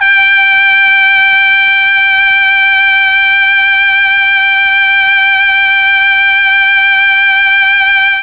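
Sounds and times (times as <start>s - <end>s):
Mellotron trumpet G3 note: 0.0s - 8.2s.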